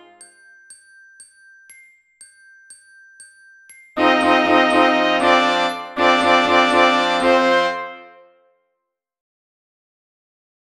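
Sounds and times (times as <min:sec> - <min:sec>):
music score: 0:00.0 - 0:00.4, 0:04.0 - 0:08.2.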